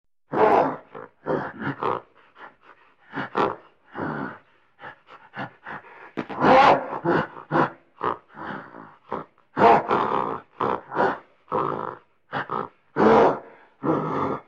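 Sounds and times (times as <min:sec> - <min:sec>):
gorilla giving harsh breathy grunts and pant-like bursts: 0:00.3 - 0:14.4.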